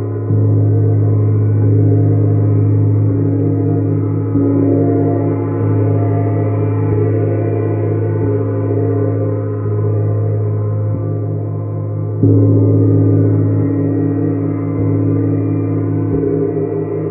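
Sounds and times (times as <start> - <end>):
Neptune gong struck softly, humming: 0.0 - 17.0.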